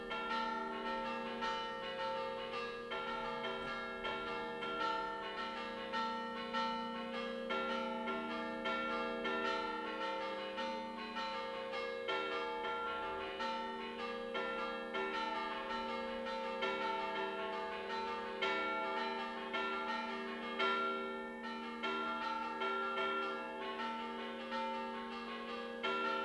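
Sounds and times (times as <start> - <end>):
bells ringing in Teviggio La Spezia Liguria: 0.0 - 26.2.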